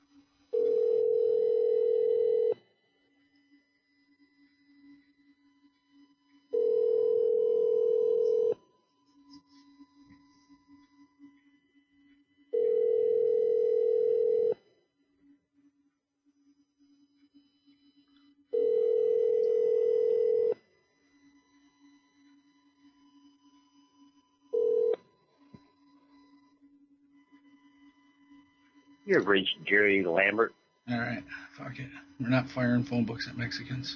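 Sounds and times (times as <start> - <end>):
telephone call ringback tones: 0.6 - 2.6, 6.5 - 8.6, 12.5 - 14.6, 18.5 - 20.6, 24.6 - 25.0
speech: 29.1 - 33.9.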